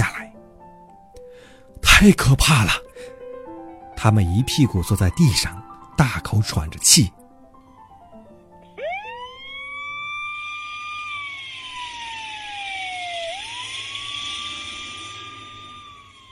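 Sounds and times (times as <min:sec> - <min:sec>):
speech: 0:02.0 - 0:02.9, 0:04.0 - 0:07.2
fire engine siren: 0:08.6 - 0:16.2.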